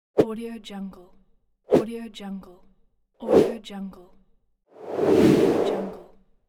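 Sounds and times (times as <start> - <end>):
whoosh: 4.8 - 6.1.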